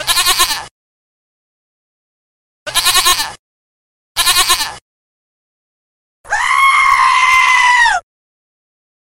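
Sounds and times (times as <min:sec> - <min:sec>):
goat bleating: 0:00.0 - 0:00.7, 0:02.7 - 0:03.4, 0:04.2 - 0:04.8, 0:06.3 - 0:08.0.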